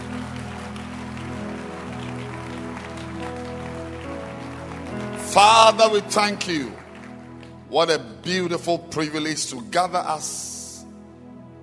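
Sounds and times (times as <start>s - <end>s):
crowd clapping hands: 0.0s - 8.6s
speech: 5.3s - 6.8s, 7.7s - 10.6s.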